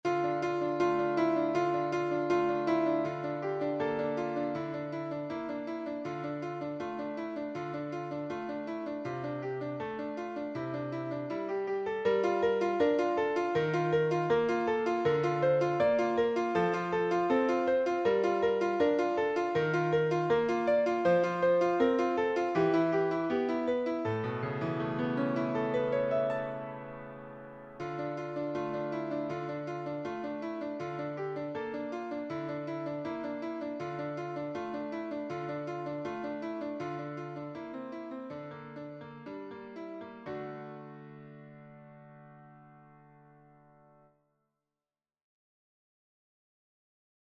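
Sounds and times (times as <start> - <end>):
solo piano: 0.0 - 44.2.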